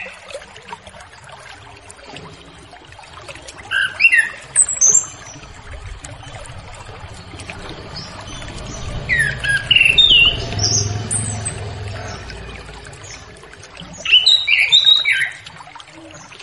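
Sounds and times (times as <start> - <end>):
low steady hum: 0.5 - 15.9
orange-headed thrush singing: 4.0 - 15.5.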